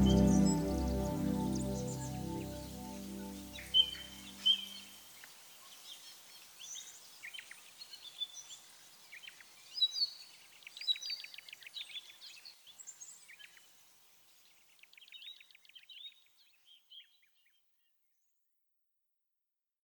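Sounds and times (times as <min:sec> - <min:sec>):
ambient music melody full mix: 0:00.0 - 0:04.4.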